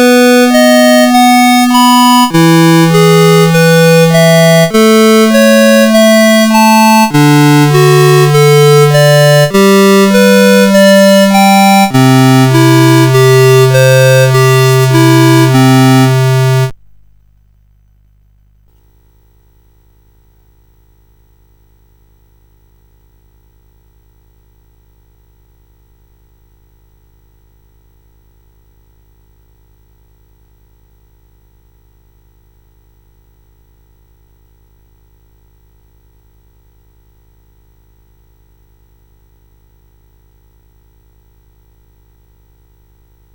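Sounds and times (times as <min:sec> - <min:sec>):
CSG8580R5 arpeggios: 0:00.0 - 0:16.8.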